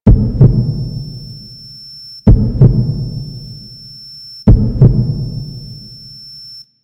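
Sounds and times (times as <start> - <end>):
beat ringtone: 0.0 - 1.5, 2.3 - 3.8, 4.5 - 5.8.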